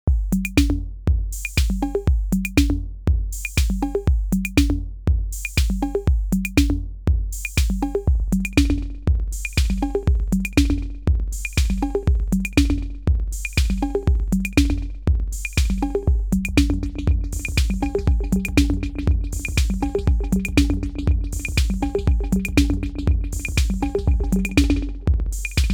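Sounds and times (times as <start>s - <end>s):
drum loop: 0.1s - 25.7s.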